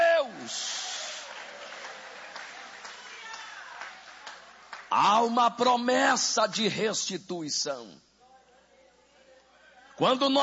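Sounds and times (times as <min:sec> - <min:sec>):
audience applauding: 0:00.4 - 0:05.4
speech: 0:04.9 - 0:08.1, 0:10.0 - 0:10.4.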